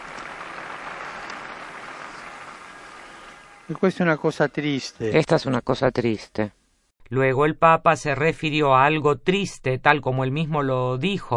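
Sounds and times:
crowd applauding: 0.0s - 3.9s
speech: 3.7s - 11.3s.

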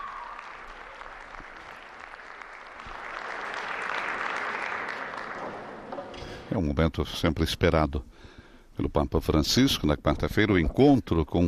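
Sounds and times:
large audience applauding in a big hall: 0.0s - 6.2s
speech: 6.5s - 8.1s, 8.8s - 11.4s.

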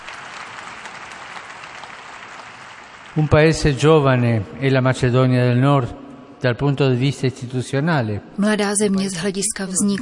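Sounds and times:
audience applause: 0.0s - 4.3s
speech: 3.2s - 9.9s.

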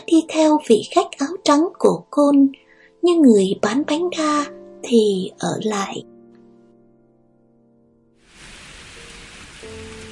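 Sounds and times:
speech: 0.1s - 6.1s
sudden rain shower: 8.2s - 10.1s.

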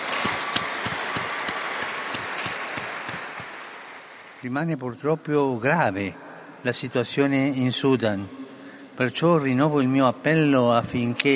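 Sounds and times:
crowd applause: 0.0s - 4.5s
speech: 4.4s - 8.4s, 9.0s - 11.3s.

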